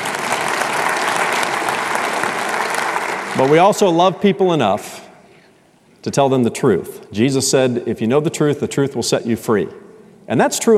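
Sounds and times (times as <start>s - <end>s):
audience applause: 0.0s - 4.0s
speech: 3.4s - 5.0s, 6.0s - 10.7s.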